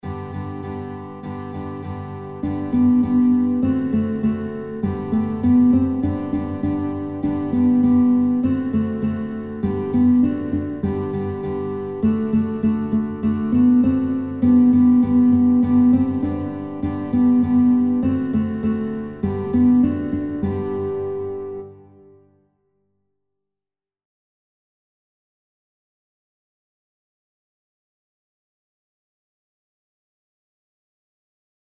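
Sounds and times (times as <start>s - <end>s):
guitar playing children's songs: 0.0s - 22.3s.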